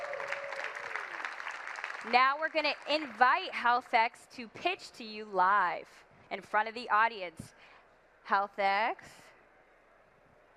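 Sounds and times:
audience applause: 0.0 - 3.2
speech: 2.0 - 7.6, 8.3 - 9.2.

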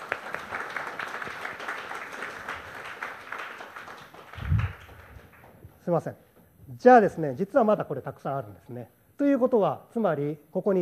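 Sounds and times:
audience applause: 0.0 - 5.7
speech: 5.9 - 10.8.

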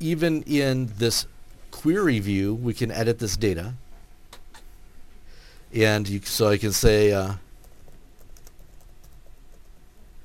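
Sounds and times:
speech: 0.0 - 3.8, 5.7 - 7.4
typing on a computer keyboard: 7.6 - 9.8.

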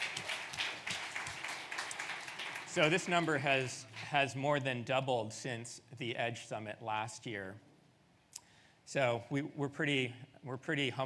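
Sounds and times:
audience applause at the Edge Summit tech keynote: 0.0 - 4.1
speech: 2.8 - 7.7, 8.9 - 11.0.

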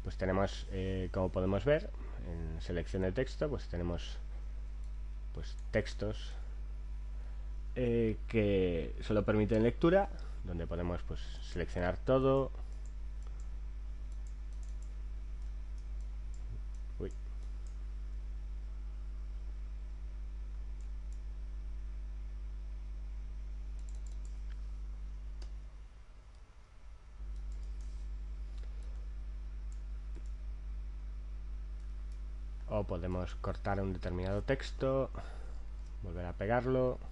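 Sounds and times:
steady low electrical hum: 0.0 - 37.1
speech: 0.1 - 4.3, 5.3 - 6.4, 7.8 - 12.6, 17.0 - 17.2, 32.9 - 35.4, 36.0 - 37.1
computer mouse and keyboard clicking: 14.1 - 17.8, 23.8 - 24.6, 27.3 - 27.9, 29.7 - 30.4.

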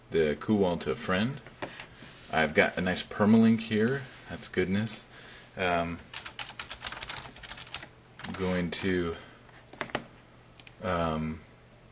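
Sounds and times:
speech: 0.1 - 1.5, 2.3 - 6.2, 8.4 - 9.2, 10.8 - 11.4
computer keyboard typing an email: 6.1 - 8.4.

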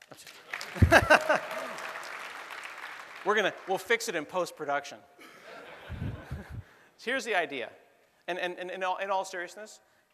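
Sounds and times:
audience clapping: 0.0 - 4.1
laughter: 0.8 - 1.8, 5.2 - 6.6
speech: 3.3 - 5.3, 7.0 - 9.9.

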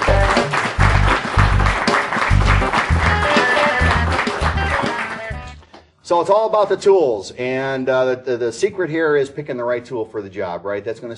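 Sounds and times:
audience applause: 0.0 - 5.7
speech: 6.1 - 11.1.

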